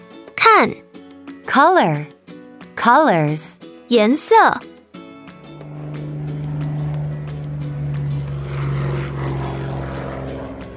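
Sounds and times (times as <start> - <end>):
speech: 0.6 - 0.9, 1.5 - 2.2, 2.8 - 4.7
propeller airplane flying high overhead: 5.1 - 10.7.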